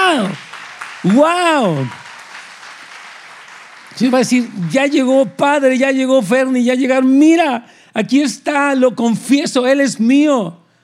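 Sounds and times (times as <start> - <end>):
audience applause: 0.0 - 5.4
speech: 0.2 - 2.0, 4.0 - 10.6.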